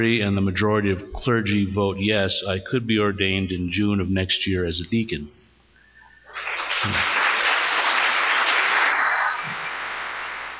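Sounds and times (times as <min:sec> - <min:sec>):
speech: 0:00.0 - 0:05.4, 0:06.4 - 0:07.1
audience applause: 0:06.3 - 0:10.5.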